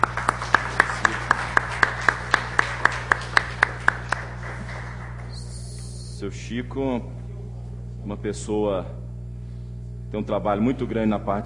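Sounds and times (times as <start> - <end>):
round of applause: 0.0 - 6.1
speech: 6.2 - 7.2, 8.0 - 9.0, 10.1 - 11.4.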